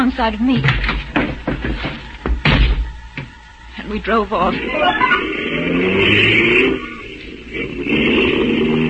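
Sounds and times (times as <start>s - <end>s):
speech: 0.0s - 0.9s, 3.9s - 6.9s, 7.5s - 8.8s
dull thumps and knocks: 0.5s - 3.3s.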